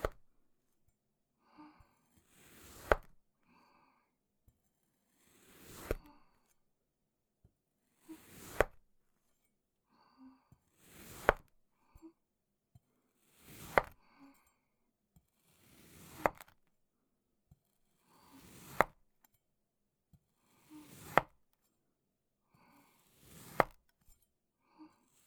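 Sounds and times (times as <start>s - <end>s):
cutting sand clay: 0.0s - 0.2s, 2.3s - 3.2s, 5.1s - 6.2s, 8.0s - 8.9s, 10.8s - 11.5s, 13.1s - 14.0s, 15.4s - 16.6s, 18.1s - 19.1s, 20.4s - 21.4s, 22.9s - 23.9s.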